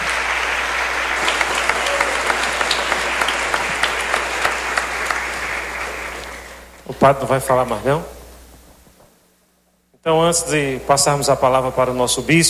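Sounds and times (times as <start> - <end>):
loud applause: 0.0 - 6.8
speech: 7.0 - 8.2, 10.0 - 12.4.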